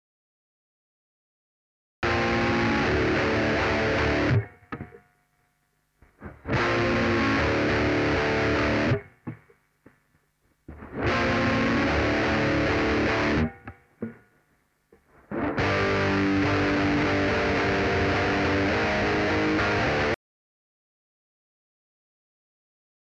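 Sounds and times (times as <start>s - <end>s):
saturated guitar: 2.0s - 5.2s, 6.0s - 10.0s, 10.7s - 20.2s.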